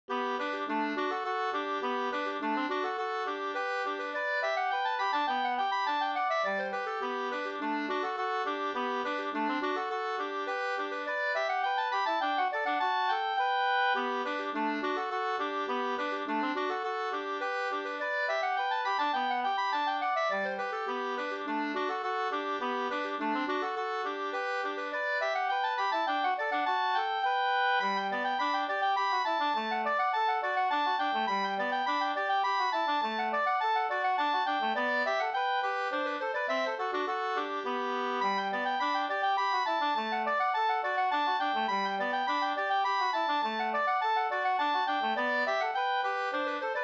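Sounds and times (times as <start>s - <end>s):
slangpolska folk dance tune: 0.1s - 46.8s.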